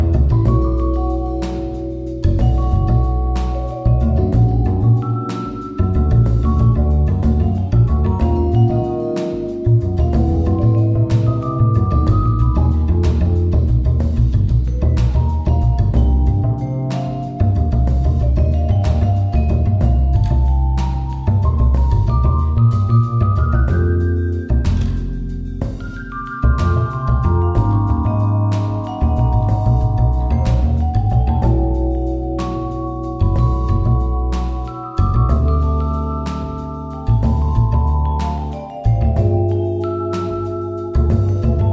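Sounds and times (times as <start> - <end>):
jazz bass: 0.0 - 41.7.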